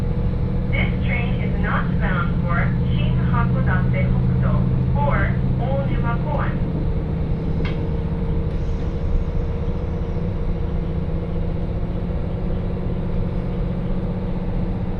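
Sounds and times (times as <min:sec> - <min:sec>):
Hakodate Main Line train engine rumble: 0:00.0 - 0:14.9.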